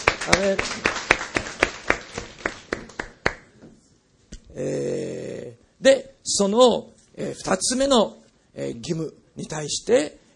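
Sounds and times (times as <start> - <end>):
applause for God: 0.0 - 3.5
speech: 0.2 - 1.0, 4.6 - 4.8, 5.8 - 10.3.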